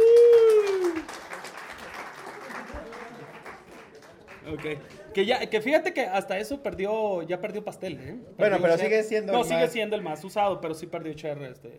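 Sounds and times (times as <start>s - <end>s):
vocal cheer: 0.0s - 1.1s
audience applause: 0.0s - 5.4s
speech: 4.6s - 11.7s.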